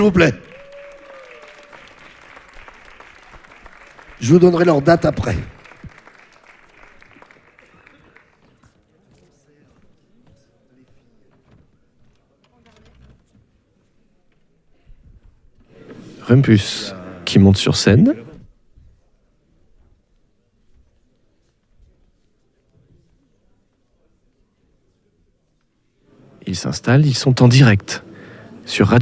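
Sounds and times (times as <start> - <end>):
speech: 0.0 - 0.5, 4.2 - 5.5, 16.3 - 18.3, 26.5 - 28.1, 28.7 - 29.0
audience applause: 0.0 - 8.6, 15.8 - 18.4, 26.2 - 29.0.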